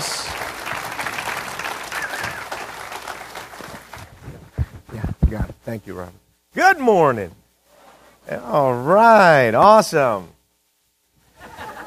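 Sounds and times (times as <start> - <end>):
audience applause: 0.0 - 4.2
speech: 5.3 - 7.4, 8.3 - 10.4
laughter: 11.4 - 11.8.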